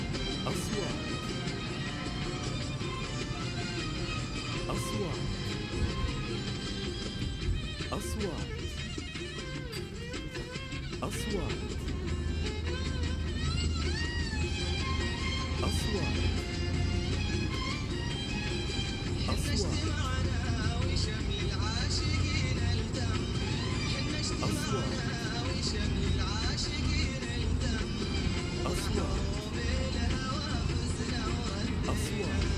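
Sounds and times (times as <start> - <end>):
cars travelling on a road: 0.0 - 32.5
radio voice: 0.4 - 1.4, 4.5 - 5.8, 7.9 - 8.9, 11.0 - 12.0, 15.5 - 16.4, 19.3 - 20.3, 24.4 - 25.3, 28.6 - 29.5.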